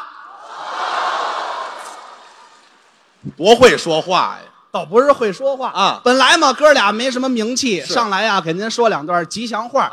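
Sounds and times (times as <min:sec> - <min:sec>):
audience applause and cheering: 0:00.4 - 0:02.6
speech: 0:03.2 - 0:09.9.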